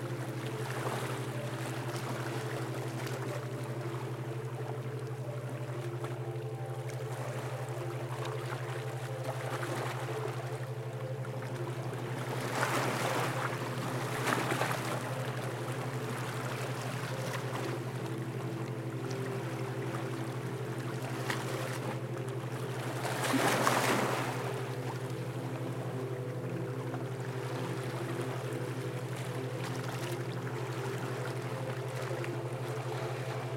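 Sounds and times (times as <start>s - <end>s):
calming ocean waves: 0.0s - 33.5s.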